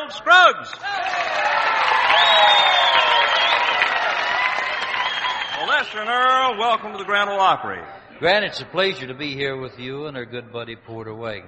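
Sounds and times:
speech: 0.1s - 1.6s, 5.8s - 11.4s
audience applause and cheering at the Grand Ole Opry: 0.7s - 7.5s.

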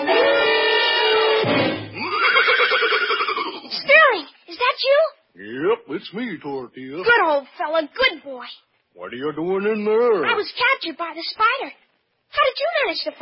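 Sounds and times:
horse whinnying: 0.2s - 3.9s
speech: 6.0s - 13.2s.

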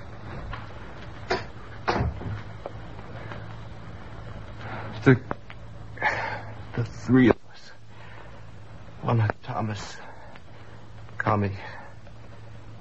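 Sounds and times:
door being closed: 1.3s - 2.5s
speech: 5.0s - 5.4s, 6.8s - 7.4s, 9.1s - 10.1s, 11.4s - 11.8s.

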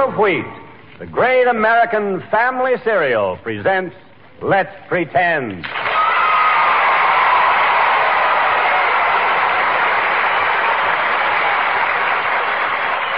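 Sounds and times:
speech: 0.2s - 5.9s
audience applause: 5.6s - 13.1s.

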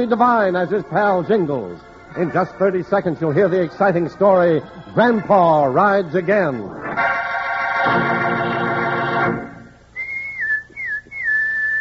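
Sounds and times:
speech: 0.0s - 7.1s, 7.8s - 8.6s
loud buzzy sustained tone: 6.9s - 9.9s
person whistling a call: 9.9s - 11.7s.

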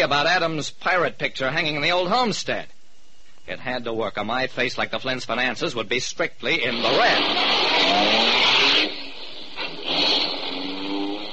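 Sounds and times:
speech: 0.0s - 2.8s, 3.4s - 8.6s
car driving off: 6.7s - 11.3s.

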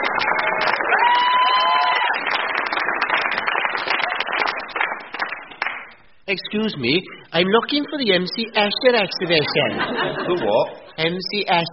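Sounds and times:
crowd cheering: 0.0s - 5.4s
speech: 6.3s - 11.7s
laughter: 8.8s - 11.2s.

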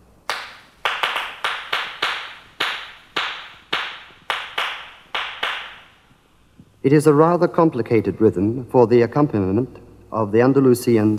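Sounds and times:
flamenco palmas hand clapping: 0.0s - 6.0s
speech: 6.8s - 11.1s.

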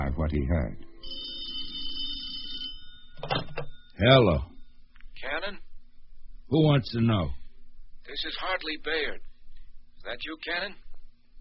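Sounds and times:
speech: 0.2s - 1.2s, 4.0s - 4.5s, 6.5s - 7.4s, 8.1s - 9.3s, 10.0s - 10.8s
telephone ringing: 0.8s - 4.0s.

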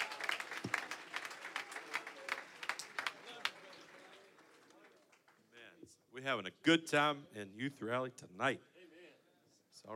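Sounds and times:
audience clapping hands: 0.0s - 5.6s
speech: 6.2s - 8.7s.

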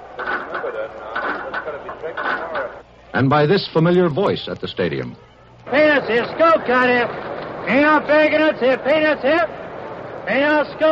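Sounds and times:
murmur of crowd voices: 0.0s - 10.8s
stadium turnstiles clicking as crowds enter: 0.2s - 2.6s
speech: 0.6s - 9.6s, 10.3s - 10.8s.

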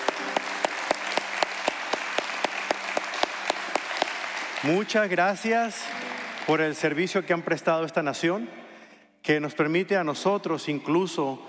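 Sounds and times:
crowd applause: 0.0s - 7.2s
speech: 4.6s - 8.6s, 9.3s - 11.4s.

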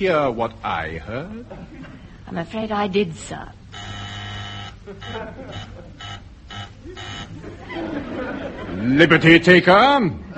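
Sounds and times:
speech: 0.0s - 3.9s, 4.9s - 6.2s, 6.8s - 10.3s
faint hum: 0.0s - 10.3s
laughter: 1.4s - 2.2s, 4.8s - 10.3s
office intercom buzzer: 3.7s - 7.5s.

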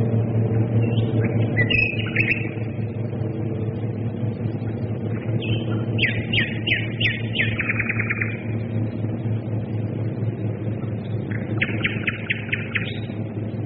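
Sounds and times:
loud droning engine noise: 0.0s - 13.6s
nightingale singing: 0.8s - 2.6s, 5.3s - 8.4s, 11.3s - 13.2s.

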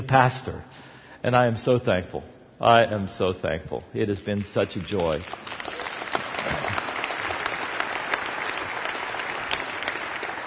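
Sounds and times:
speech: 0.1s - 5.7s
audience applause: 4.6s - 10.4s.

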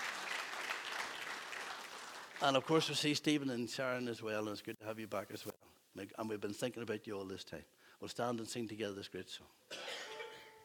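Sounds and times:
crowd clapping: 0.0s - 3.0s
speech: 2.4s - 9.8s.

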